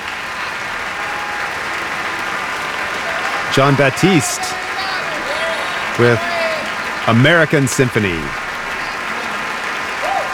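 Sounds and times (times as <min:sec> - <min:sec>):
audience cheering and applauding: 0:00.0 - 0:10.3
laughter: 0:01.4 - 0:10.3
speech: 0:03.5 - 0:04.9, 0:06.0 - 0:06.4, 0:07.1 - 0:08.4.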